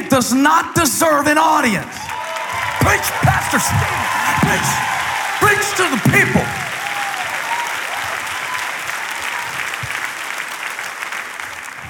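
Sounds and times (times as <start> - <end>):
speech: 0.1 - 2.2, 2.8 - 6.7
scattered shouts: 2.0 - 8.2
audience applause: 2.0 - 11.8.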